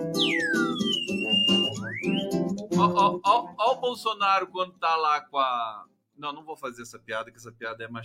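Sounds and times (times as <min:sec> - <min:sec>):
indigenous whistle blown in sliding notes: 0:00.0 - 0:02.5
speech: 0:02.8 - 0:08.0.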